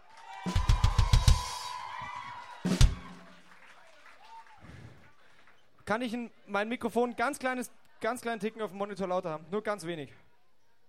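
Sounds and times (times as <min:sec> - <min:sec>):
small audience clapping: 0:00.0 - 0:05.8
speech: 0:05.9 - 0:10.2.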